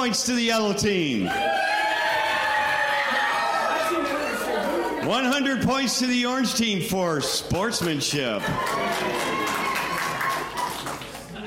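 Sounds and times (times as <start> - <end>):
speech: 0.0 - 1.8, 5.1 - 9.6
crowd cheering and shouting: 1.1 - 5.2, 7.2 - 11.4.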